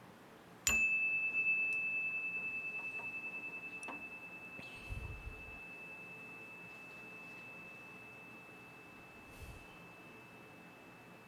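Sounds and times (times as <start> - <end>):
meditation chime ringing: 0.7 - 11.2.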